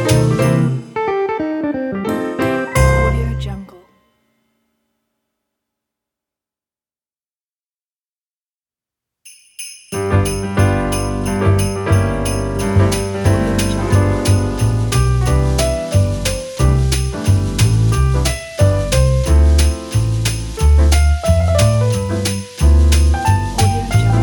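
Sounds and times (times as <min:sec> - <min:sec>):
christmas jazz music: 0:00.0 - 0:03.9, 0:09.4 - 0:24.2.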